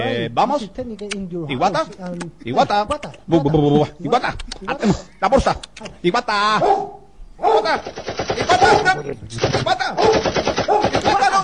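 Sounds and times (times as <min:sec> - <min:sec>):
speech: 0:00.1 - 0:11.0
German shepherd dog barking loudly: 0:06.6 - 0:07.8, 0:08.5 - 0:09.0, 0:10.0 - 0:11.4.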